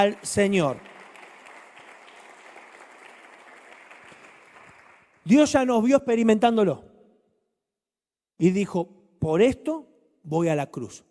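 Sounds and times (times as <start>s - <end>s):
speech: 0.0s - 0.9s, 5.2s - 6.9s, 8.4s - 11.0s
audience applause: 0.0s - 5.2s.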